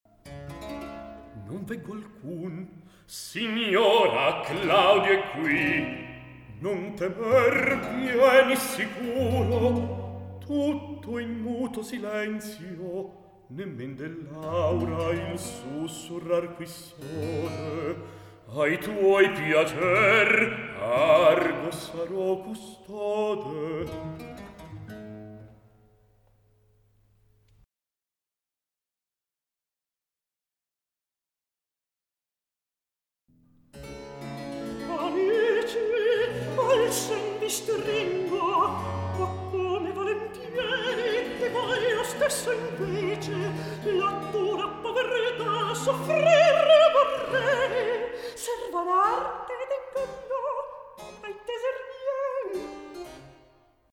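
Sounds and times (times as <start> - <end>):
recitative singing: 1.4 - 24.1, 34.8 - 52.9.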